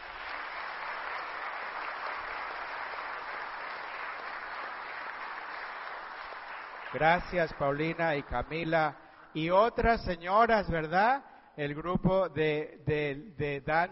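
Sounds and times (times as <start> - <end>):
audience applause: 0.0 - 8.8
speech: 6.9 - 13.9.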